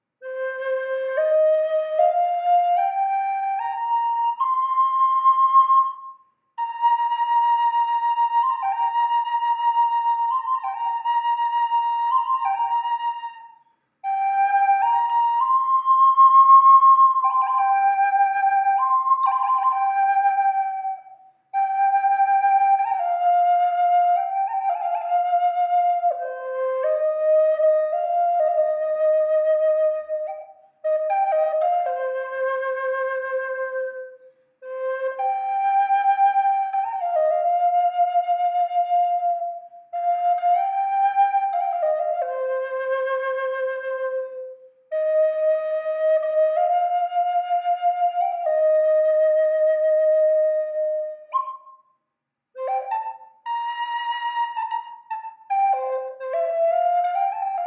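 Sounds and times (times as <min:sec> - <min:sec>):
flute with reverb: 0:00.2 - 0:52.0, 0:52.6 - 0:57.6.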